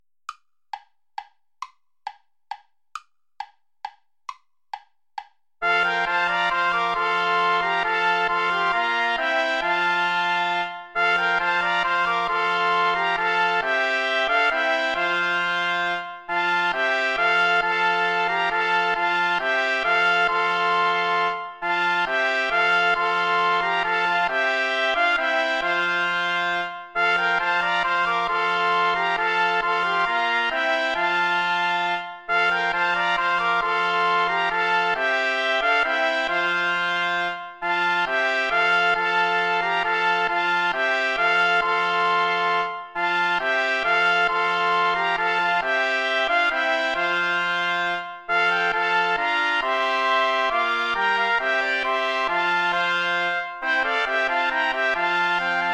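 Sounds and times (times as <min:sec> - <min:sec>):
instrumental play-along backing track without trumpet: 0:00.3 - 0:55.7.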